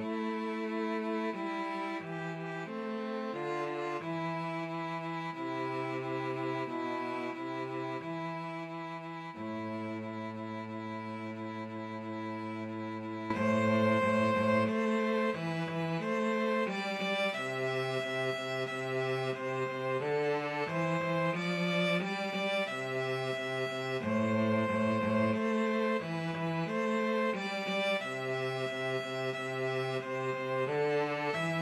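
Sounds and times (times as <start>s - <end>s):
string trio playing a pavane as a playalong: 0.0s - 31.6s.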